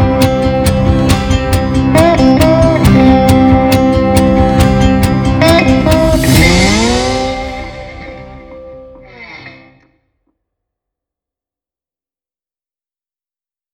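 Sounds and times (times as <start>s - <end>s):
slide guitars: 0.0s - 9.9s.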